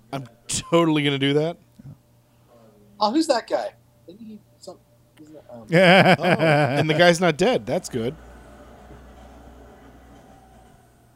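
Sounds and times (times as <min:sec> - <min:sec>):
speech: 0:00.1 - 0:02.0, 0:03.0 - 0:08.3
laughter: 0:05.7 - 0:08.1
moving subway train cars rumbling: 0:07.4 - 0:11.1.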